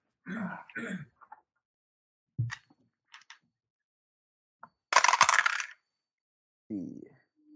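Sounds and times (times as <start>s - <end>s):
dice rolled for a tabletop role-playing game climb check: 4.9s - 5.8s.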